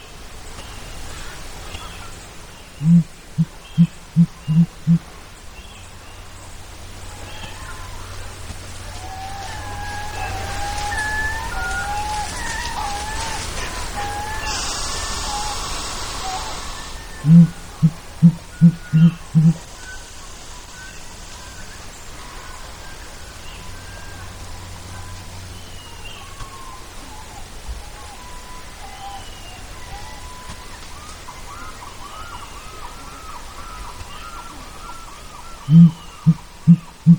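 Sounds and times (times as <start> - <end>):
sooty grouse hooting in Glacier Bay, Alaska: 2.8 - 5.1, 7.5 - 20.2, 29.6 - 37.1.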